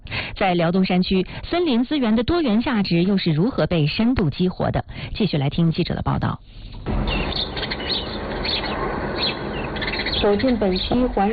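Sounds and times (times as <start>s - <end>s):
speech: 0.4s - 7.6s, 10.2s - 11.3s
birdsong in a forest valley: 6.5s - 11.3s.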